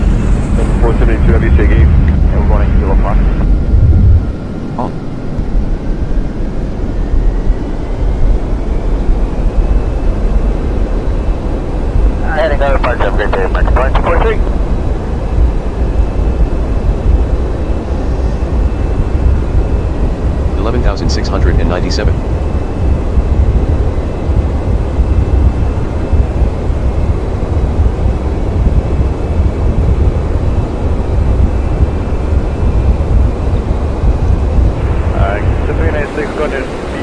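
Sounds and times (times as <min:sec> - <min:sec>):
video game airplane engines roaring during takeoff on a runway: 0:00.0 - 0:37.0
people talking: 0:00.6 - 0:03.4, 0:12.2 - 0:14.5, 0:20.5 - 0:22.2, 0:35.1 - 0:37.0.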